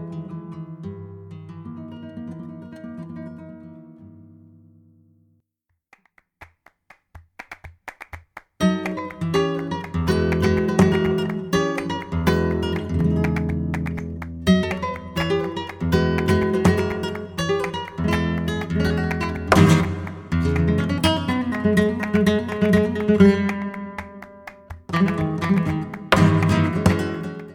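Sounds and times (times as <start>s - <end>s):
rondena bulerias flamenco music: 5.9s - 27.5s.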